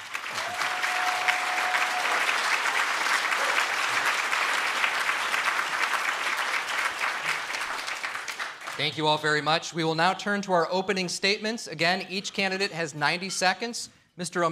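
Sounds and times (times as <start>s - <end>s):
audience applause welcoming debaters at the City Club of Cleveland: 0.0s - 9.0s
speech: 8.8s - 14.4s.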